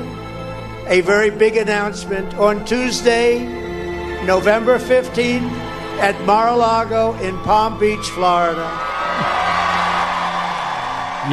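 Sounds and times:
speech: 0:00.9 - 0:03.6, 0:04.2 - 0:09.3
rally crowd cheering: 0:07.0 - 0:11.3
sustained whoop: 0:07.0 - 0:11.3
applause: 0:08.9 - 0:11.3.

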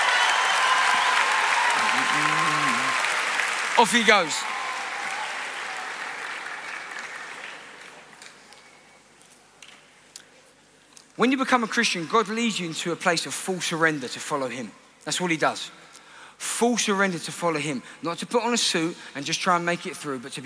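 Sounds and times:
audience applause: 0:00.0 - 0:08.4
speech: 0:02.1 - 0:02.5, 0:03.8 - 0:04.5, 0:11.2 - 0:15.8, 0:16.4 - 0:20.4.

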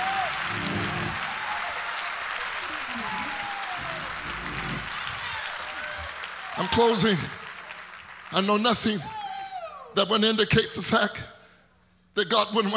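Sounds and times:
audience clapping in praise: 0:00.0 - 0:09.1
speech: 0:06.6 - 0:07.4, 0:08.3 - 0:09.2, 0:10.0 - 0:11.3, 0:12.2 - 0:12.7.

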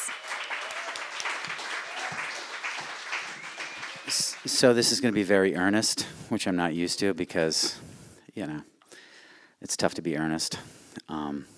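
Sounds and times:
crowd applause: 0:00.0 - 0:05.2
speech: 0:04.1 - 0:07.8, 0:08.4 - 0:08.7, 0:09.6 - 0:11.5.

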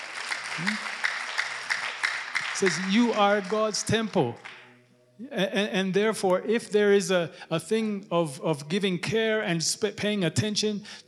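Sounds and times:
applause: 0:00.0 - 0:04.6
speech: 0:00.6 - 0:01.0, 0:02.6 - 0:04.6, 0:05.2 - 0:11.0.

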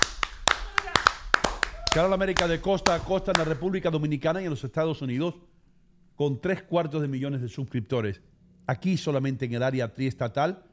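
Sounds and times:
small group clapping: 0:00.0 - 0:03.7
speech: 0:02.0 - 0:05.6, 0:06.2 - 0:10.7.

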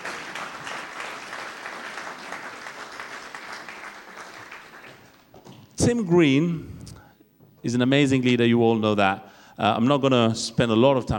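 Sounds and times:
church congregation clapping to welcome a speaker: 0:00.0 - 0:05.7
speech: 0:05.8 - 0:06.7, 0:07.6 - 0:11.1.

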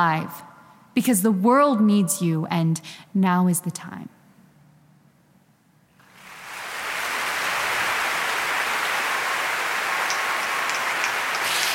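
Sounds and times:
speech: 0:00.0 - 0:04.2
crowd cheering and applauding: 0:06.0 - 0:11.7.

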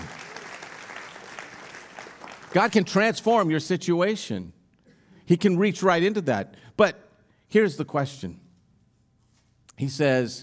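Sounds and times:
audience applause: 0:00.0 - 0:02.8
speech: 0:02.5 - 0:04.6, 0:05.3 - 0:08.4, 0:09.8 - 0:10.4.

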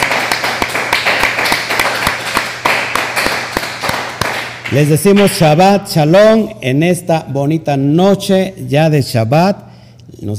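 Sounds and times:
group applause: 0:00.0 - 0:05.3
speech: 0:04.7 - 0:10.3.

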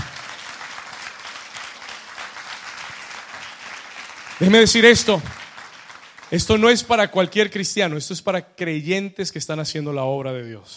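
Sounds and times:
audience applause: 0:00.0 - 0:06.8
speech: 0:04.4 - 0:05.4, 0:06.3 - 0:10.7.

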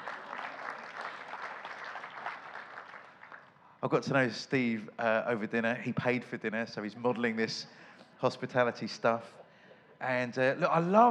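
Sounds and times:
crowd applauding: 0:00.0 - 0:03.6
speech: 0:03.8 - 0:09.4, 0:10.0 - 0:11.1.

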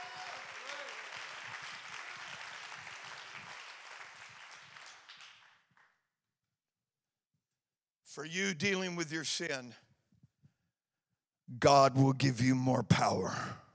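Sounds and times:
large group clapping hands: 0:00.0 - 0:06.0
speech: 0:08.2 - 0:09.8, 0:11.5 - 0:13.6.

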